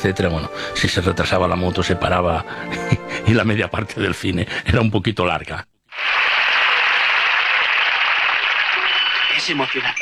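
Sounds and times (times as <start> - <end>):
speech: 0.0 - 6.2, 9.5 - 9.9
applause: 5.9 - 9.9.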